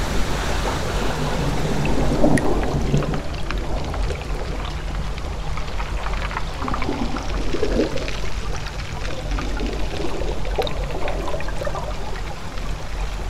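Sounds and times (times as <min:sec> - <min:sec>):
flowing water: 0:00.0 - 0:13.2.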